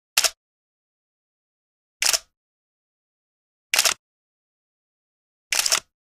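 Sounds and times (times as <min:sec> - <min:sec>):
camera shutter: 0:02.0 - 0:02.3, 0:03.8 - 0:04.0, 0:05.5 - 0:05.9.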